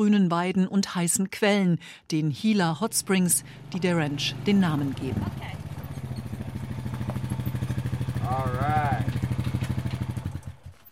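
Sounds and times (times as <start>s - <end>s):
speech: 0.0s - 5.6s
quad bike engine rattling: 2.8s - 10.9s.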